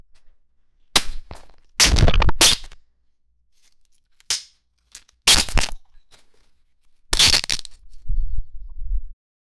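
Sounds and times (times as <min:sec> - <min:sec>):
wings being ripped apart, gore: 0:01.4 - 0:02.8, 0:04.2 - 0:05.8, 0:07.2 - 0:07.8.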